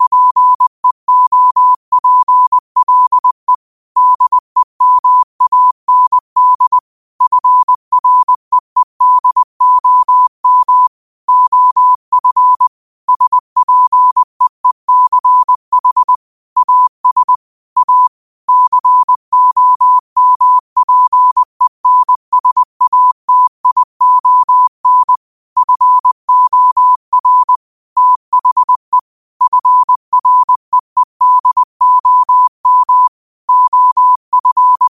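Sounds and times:
morse code at 5 wpm: 0:00.0 - 0:34.9.

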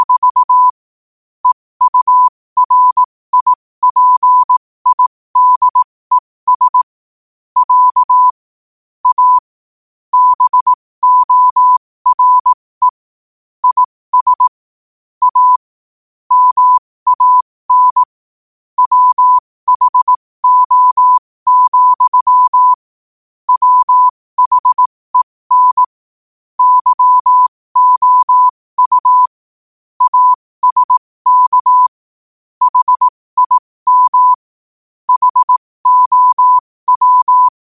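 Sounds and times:
morse code at 5 wpm: 0:00.0 - 0:00.7, 0:01.4 - 0:06.9, 0:07.6 - 0:08.4, 0:09.0 - 0:09.4, 0:10.1 - 0:13.0, 0:13.6 - 0:14.6, 0:15.2 - 0:15.6, 0:16.3 - 0:18.1, 0:18.8 - 0:22.8, 0:23.5 - 0:26.0, 0:26.6 - 0:29.4, 0:30.0 - 0:32.0, 0:32.6 - 0:34.5, 0:35.1 - 0:37.6.

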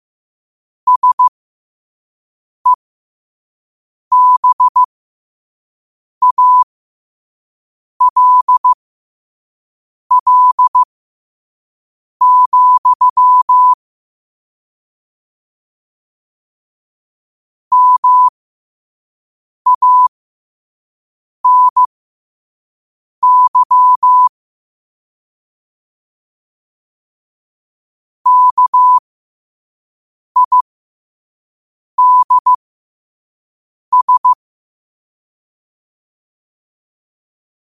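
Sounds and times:
morse code at 5 wpm: 0:00.9 - 0:01.3, 0:04.1 - 0:04.9, 0:06.2 - 0:06.7, 0:08.0 - 0:08.8, 0:10.1 - 0:10.9, 0:12.2 - 0:13.8, 0:17.7 - 0:18.3, 0:19.7 - 0:20.1, 0:21.4 - 0:21.9, 0:23.2 - 0:24.3, 0:28.3 - 0:29.0, 0:30.4 - 0:30.6, 0:32.0 - 0:32.6, 0:33.9 - 0:34.4.

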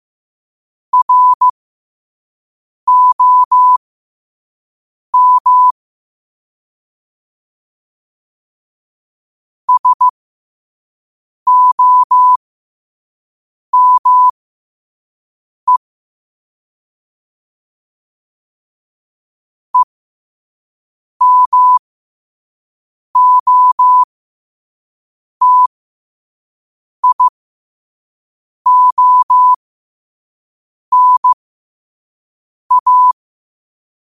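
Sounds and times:
morse code at 5 wpm: 0:01.0 - 0:01.5, 0:02.9 - 0:03.8, 0:05.2 - 0:05.8, 0:09.7 - 0:10.1, 0:11.5 - 0:12.4, 0:13.8 - 0:14.3, 0:21.2 - 0:21.8, 0:23.2 - 0:24.1, 0:25.4 - 0:25.7, 0:27.0 - 0:27.3, 0:28.7 - 0:29.6, 0:30.9 - 0:31.4, 0:32.7 - 0:33.2.

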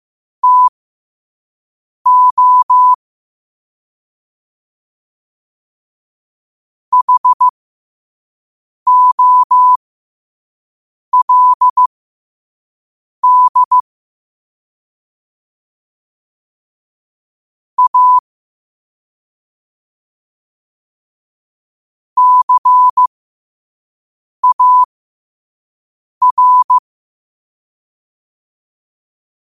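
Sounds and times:
morse code at 5 wpm: 0:00.4 - 0:00.7, 0:02.1 - 0:03.0, 0:06.9 - 0:07.5, 0:08.9 - 0:09.8, 0:11.2 - 0:11.9, 0:13.2 - 0:13.8, 0:17.8 - 0:18.2, 0:22.2 - 0:23.1, 0:24.4 - 0:24.9, 0:26.2 - 0:26.8.

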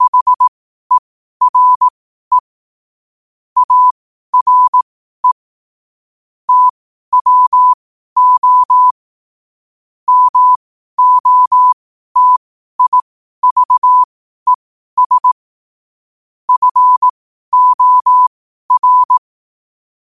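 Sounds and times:
morse code at 5 wpm: 0:00.0 - 0:00.5, 0:01.4 - 0:02.5, 0:03.6 - 0:05.4, 0:06.5 - 0:08.9, 0:10.1 - 0:14.1, 0:15.0 - 0:15.4, 0:16.5 - 0:19.2.

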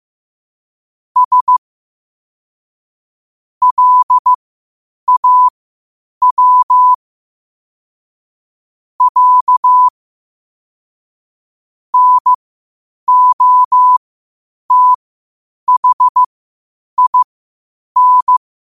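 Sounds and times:
morse code at 5 wpm: 0:01.2 - 0:01.6, 0:03.6 - 0:04.4, 0:05.1 - 0:05.5, 0:06.2 - 0:07.0, 0:09.0 - 0:09.9, 0:12.0 - 0:12.4, 0:13.1 - 0:14.0, 0:14.7 - 0:15.0, 0:15.7 - 0:16.3, 0:17.0 - 0:17.3, 0:18.0 - 0:18.4.

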